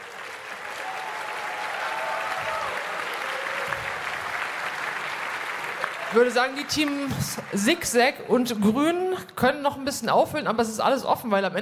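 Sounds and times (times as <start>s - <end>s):
faint whistles and cheers: 0.0s - 4.9s
audience applause: 0.0s - 8.3s
speech: 6.1s - 11.6s.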